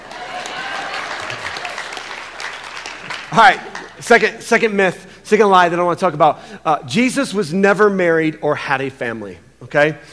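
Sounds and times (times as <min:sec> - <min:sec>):
audience clapping: 0:00.0 - 0:04.1
speech: 0:03.3 - 0:10.1.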